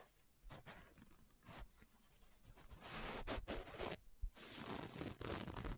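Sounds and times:
book being tapped and scratched: 2.8 - 5.7.

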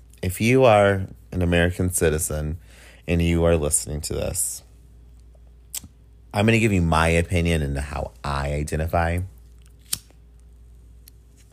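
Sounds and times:
low steady hum: 0.0 - 11.5
speech: 0.2 - 4.6, 6.3 - 9.3
finger snap: 5.7 - 6.0.

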